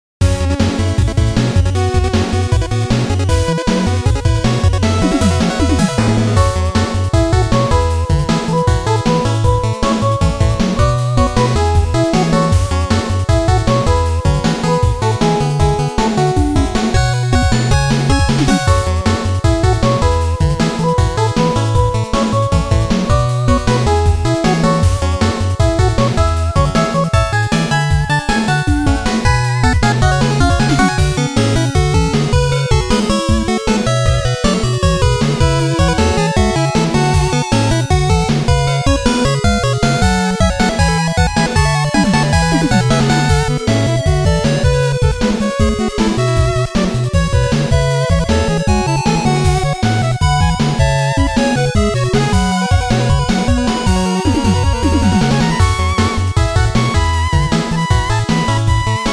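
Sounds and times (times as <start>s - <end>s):
8-bit music arrangement: 0.2s - 59.1s.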